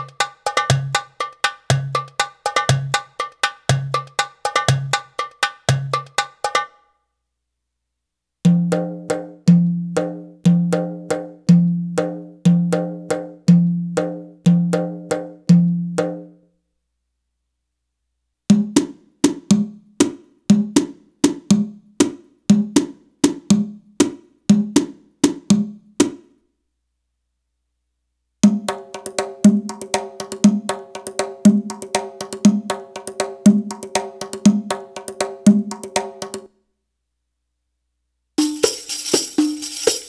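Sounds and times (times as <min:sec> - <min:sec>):
Arabic rhythm percussion: 0:00.0 - 0:06.8, 0:08.5 - 0:16.2, 0:18.5 - 0:26.3, 0:28.5 - 0:36.5, 0:38.4 - 0:40.0.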